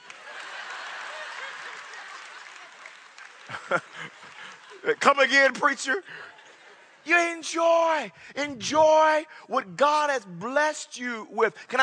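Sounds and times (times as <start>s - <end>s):
audience clapping: 0.0s - 8.0s
laughter: 0.0s - 8.1s
speech: 3.5s - 4.2s, 4.8s - 6.3s, 7.0s - 11.8s.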